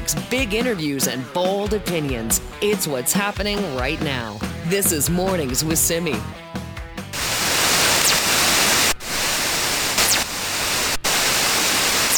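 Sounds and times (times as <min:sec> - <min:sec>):
speech: 0:00.1 - 0:06.5
fast radio bursts converted to sound as hissing static: 0:07.1 - 0:12.1.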